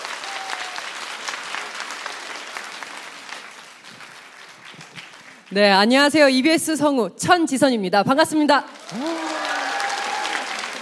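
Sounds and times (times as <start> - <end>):
crowd applauding: 0.0 - 5.6, 8.7 - 10.8
speech: 5.5 - 9.3.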